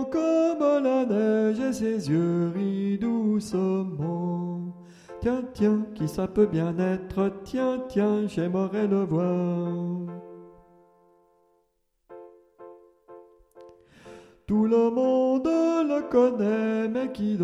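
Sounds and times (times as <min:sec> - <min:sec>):
soprano singing: 0:00.0 - 0:10.7, 0:14.4 - 0:17.4.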